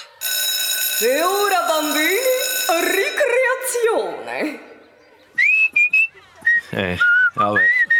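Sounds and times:
speech: 1.0 - 4.7, 6.7 - 7.9
person whistling a short cheerful tune: 5.4 - 7.9.

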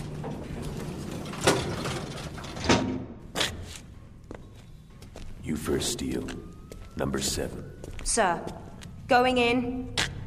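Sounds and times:
door opening on the 27th floor: 0.0 - 3.5
speech: 5.5 - 10.1.

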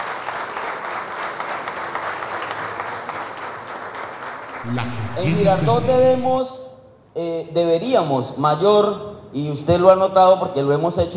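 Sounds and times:
audience applause for the national police at a municipal government event in Girardot: 0.0 - 6.0
speech: 4.6 - 6.6, 7.2 - 11.1.

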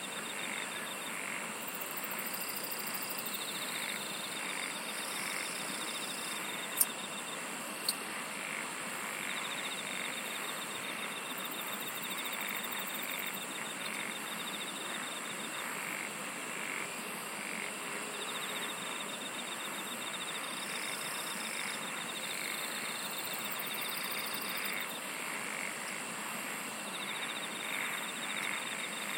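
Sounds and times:
insects trilling: 0.0 - 29.1.

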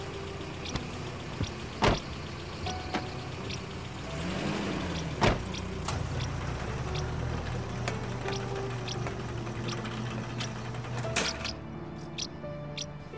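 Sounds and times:
car driving off: 0.0 - 13.0
car door closing: 1.4 - 2.1, 5.2 - 6.0.

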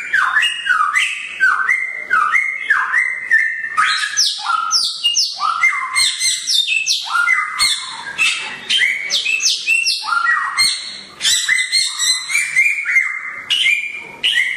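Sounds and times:
songbird singing vigorously: 0.0 - 14.5.

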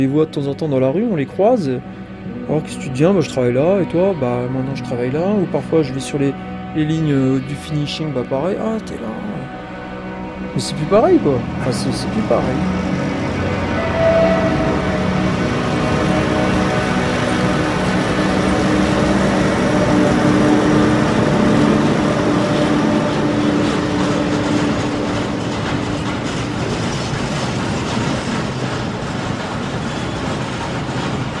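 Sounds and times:
speech: 0.0 - 9.3, 10.6 - 13.6
train rolling on a steelworks factory railway in Lorraine: 0.0 - 31.3
wagons clattering over rails: 10.6 - 31.3.

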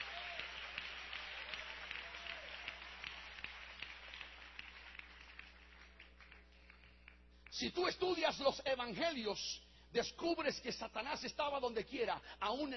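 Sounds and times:
audience clapping hands: 0.0 - 7.8
speech: 7.6 - 12.7.

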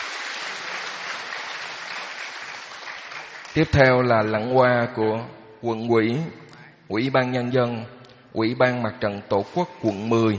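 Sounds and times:
audience in a hall clapping during a Buddhist ordination ceremony: 0.0 - 4.2
speech: 3.6 - 10.3.

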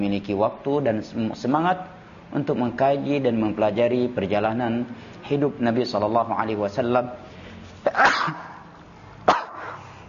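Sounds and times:
speech: 0.0 - 8.5
sharp explosive sneezes: 7.8 - 10.0.

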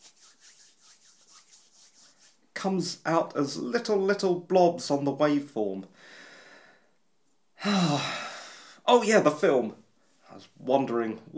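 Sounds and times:
hands rubbing together near a microphone: 0.0 - 2.6
speech: 2.6 - 6.2, 8.9 - 11.3.

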